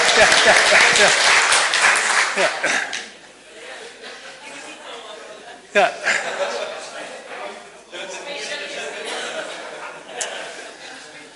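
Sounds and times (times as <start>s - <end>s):
audience applause: 0.0s - 3.1s
speech: 0.2s - 1.4s, 2.4s - 3.0s, 5.8s - 6.6s.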